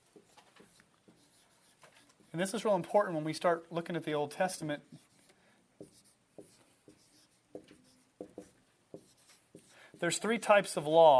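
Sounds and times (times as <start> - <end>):
writing on a board: 0.0 - 2.4, 4.8 - 10.3
speech: 2.3 - 5.1, 10.0 - 11.1.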